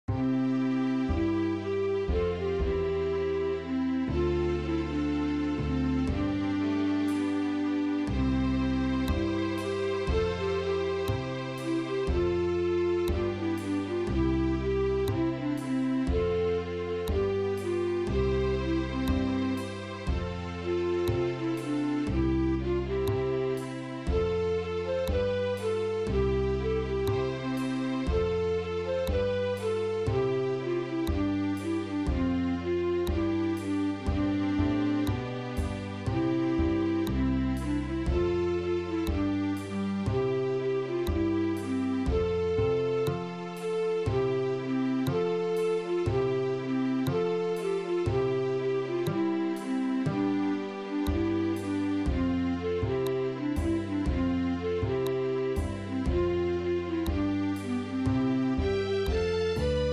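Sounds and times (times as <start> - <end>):
instrumental music: 0.0 - 59.9.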